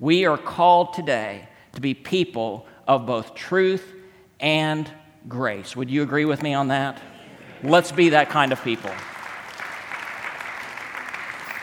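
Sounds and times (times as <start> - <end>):
speech: 0.0 - 9.1
smattering of applause: 7.5 - 11.6.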